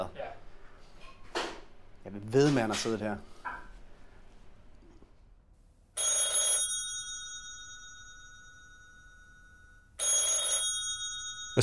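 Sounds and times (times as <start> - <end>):
speech: 2.0 - 3.3
telephone ringing: 6.0 - 11.6.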